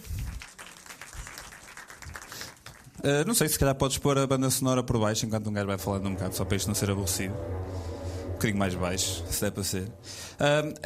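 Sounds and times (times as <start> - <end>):
round of applause, dense crackling hand clapping: 0.0 - 3.0
speech: 3.0 - 10.8.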